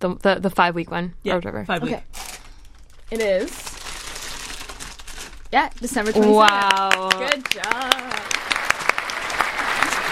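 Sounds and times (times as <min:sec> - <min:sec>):
speech: 0:00.0 - 0:02.2, 0:03.1 - 0:03.7, 0:05.5 - 0:08.4
small group clapping: 0:06.2 - 0:10.1.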